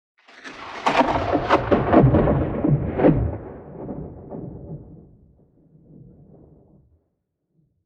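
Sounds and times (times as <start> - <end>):
lightning strike: 0.5 - 6.3.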